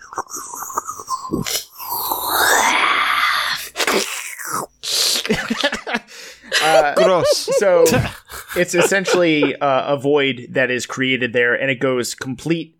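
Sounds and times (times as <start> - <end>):
voice imitating an eerie whispering, slurping noise: 0.0 - 5.3
speech: 1.3 - 1.6, 6.8 - 12.7
laughter: 5.3 - 9.6.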